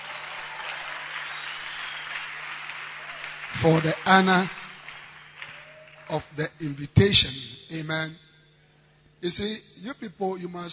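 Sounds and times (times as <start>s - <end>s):
audience clapping hands at a church service: 0.0s - 6.4s
speech: 3.5s - 4.6s, 6.1s - 8.2s, 9.2s - 10.7s.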